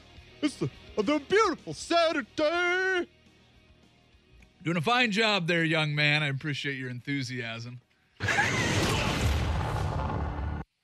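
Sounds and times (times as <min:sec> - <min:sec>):
speech: 0:00.4 - 0:03.2, 0:04.6 - 0:07.8
explosion sound effect: 0:08.2 - 0:10.7.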